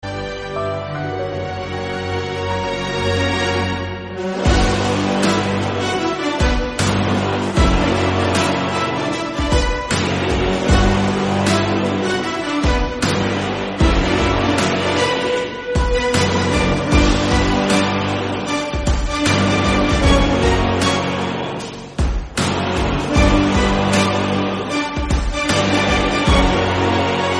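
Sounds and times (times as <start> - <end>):
instrumental background music: 0.0 - 27.3.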